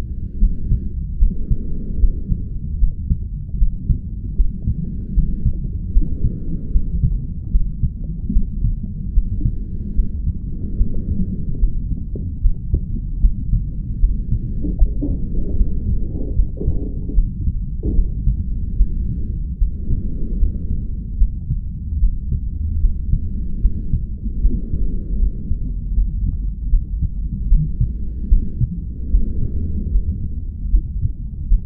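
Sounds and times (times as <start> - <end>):
sounds inside a mother's womb: 0.0 - 31.6.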